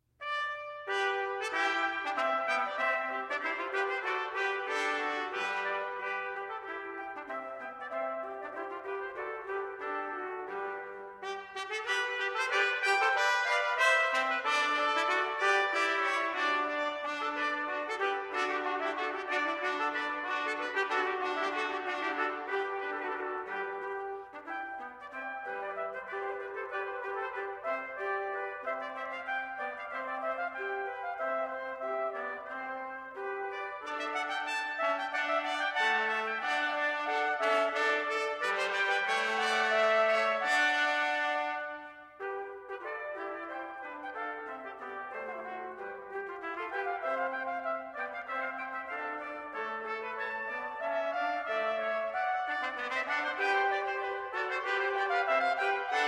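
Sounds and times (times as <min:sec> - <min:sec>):
trumpet ensemble playing a madrigal: 0:00.2 - 0:56.0.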